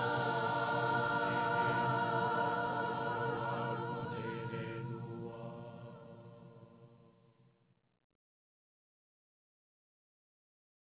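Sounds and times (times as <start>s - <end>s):
music: 0.0s - 8.0s.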